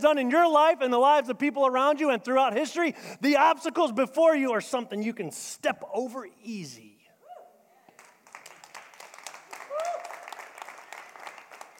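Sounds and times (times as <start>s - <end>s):
speech: 0.0s - 6.9s
awkward church audience clapping: 7.9s - 11.7s.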